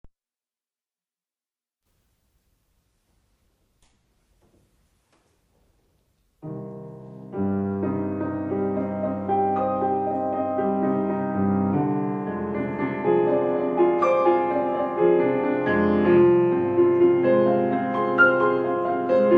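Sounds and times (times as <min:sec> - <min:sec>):
piano etude in C minor: 0:06.4 - 0:19.3.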